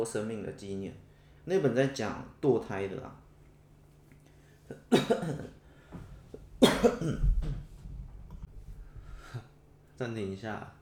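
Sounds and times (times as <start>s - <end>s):
speech: 0.0s - 3.2s, 4.7s - 6.0s, 6.6s - 7.6s, 10.0s - 10.8s
person coughing: 4.8s - 5.6s, 6.6s - 7.6s.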